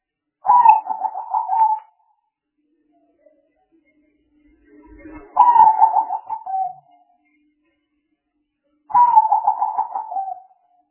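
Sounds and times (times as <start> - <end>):
Spotted dove cooing: 0.4 - 2.0, 5.4 - 6.8, 8.9 - 10.5.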